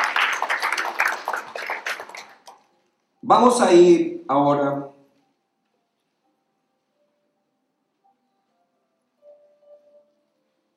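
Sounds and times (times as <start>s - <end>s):
audience applause: 0.0s - 2.6s
speech: 3.2s - 5.0s.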